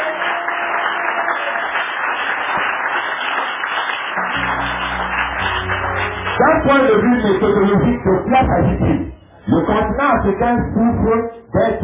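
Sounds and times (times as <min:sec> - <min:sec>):
thin scattered applause: 0:00.0 - 0:09.0
speech: 0:06.4 - 0:11.8.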